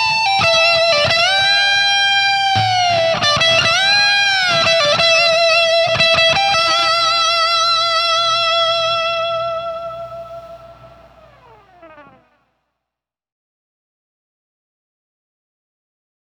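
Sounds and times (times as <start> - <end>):
guitar through distortion pedal with gain maxed: 0.0 - 12.5.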